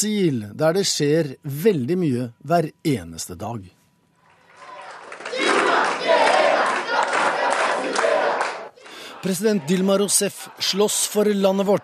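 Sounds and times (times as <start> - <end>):
speech: 0.0 - 3.8, 9.2 - 11.8
crowd of supporters chanting slogans: 4.6 - 11.8.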